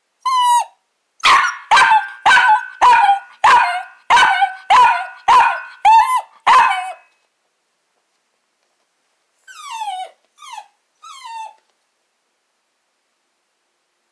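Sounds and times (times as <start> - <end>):
small dog barking with a ringing echo: 1.2 - 7.1.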